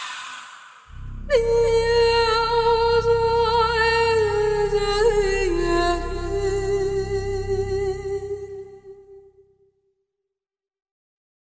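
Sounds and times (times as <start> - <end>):
theme music: 0.9 - 8.6.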